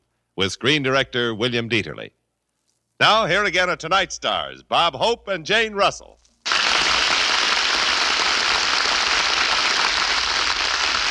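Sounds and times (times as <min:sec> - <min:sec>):
speech: 0:00.4 - 0:02.2, 0:03.0 - 0:06.2
audience applause: 0:06.5 - 0:11.0.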